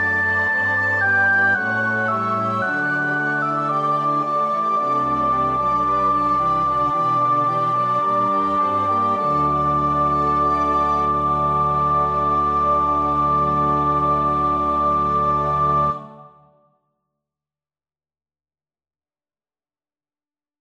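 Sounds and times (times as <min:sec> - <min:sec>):
soprano practising a choir part: 0:00.0 - 0:16.5.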